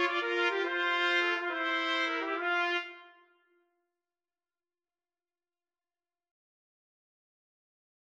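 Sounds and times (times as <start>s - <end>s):
trumpet duet: 0.0s - 3.4s.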